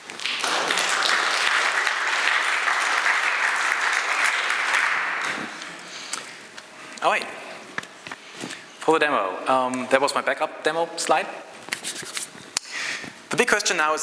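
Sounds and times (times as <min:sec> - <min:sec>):
room full of people applauding: 0:00.0 - 0:05.5
speech: 0:07.0 - 0:07.4, 0:08.9 - 0:12.0, 0:13.4 - 0:14.0.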